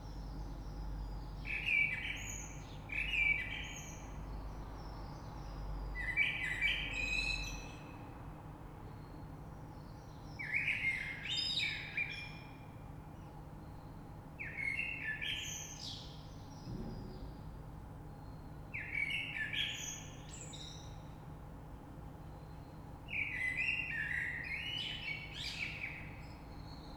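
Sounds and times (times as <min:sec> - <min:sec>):
common blackbird song: 0:00.0 - 0:08.1, 0:08.8 - 0:17.4, 0:18.1 - 0:21.2, 0:22.2 - 0:26.9
low thud: 0:16.7 - 0:17.9.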